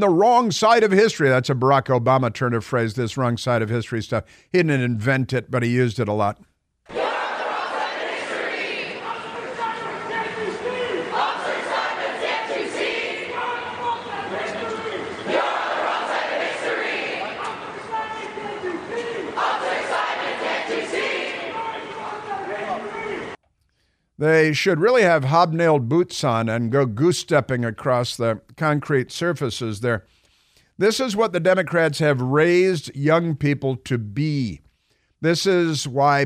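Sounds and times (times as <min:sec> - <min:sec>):
speech: 0:00.0 - 0:07.0, 0:24.2 - 0:30.2, 0:30.8 - 0:34.6, 0:35.2 - 0:36.2
crowd of protesters chanting: 0:06.9 - 0:23.4.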